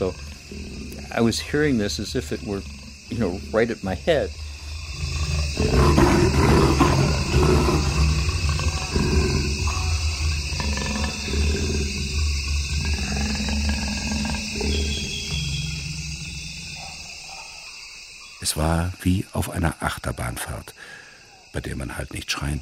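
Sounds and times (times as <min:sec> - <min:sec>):
speech: 0:00.0 - 0:04.4, 0:18.6 - 0:22.6
large animal breathing into microphone: 0:00.0 - 0:16.8.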